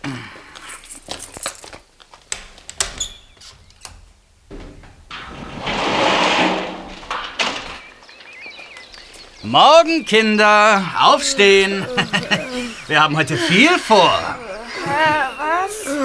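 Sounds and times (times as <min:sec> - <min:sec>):
camper van door being unlocked: 0:01.6 - 0:05.0
camper van sliding door scraping open: 0:04.7 - 0:08.0
speech: 0:09.5 - 0:15.9
laughter: 0:09.5 - 0:16.0.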